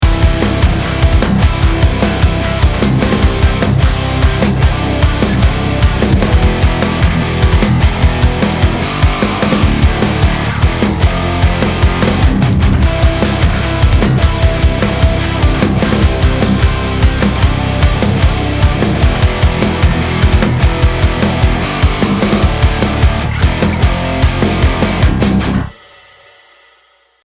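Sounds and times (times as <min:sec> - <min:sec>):
rock music: 0:00.0 - 0:26.0.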